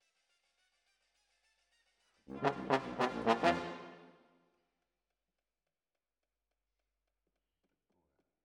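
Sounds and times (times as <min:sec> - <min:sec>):
trombones: 0:02.3 - 0:04.2.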